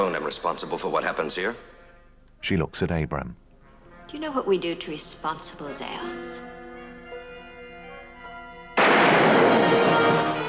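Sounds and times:
speech: 0.2 - 1.7, 2.4 - 3.4, 4.1 - 6.6
pistol gunshot: 8.8 - 10.2.

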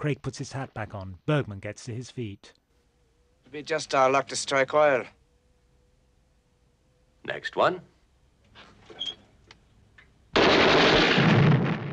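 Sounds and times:
speech: 0.0 - 2.6, 3.5 - 5.2, 7.2 - 7.9
explosions in a film scene with fireballs and smoke on sand: 10.4 - 11.9.

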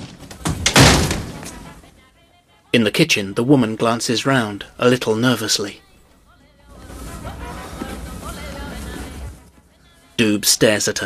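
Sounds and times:
door kicked shut: 0.0 - 1.6
speech: 2.8 - 5.9, 10.2 - 11.0.

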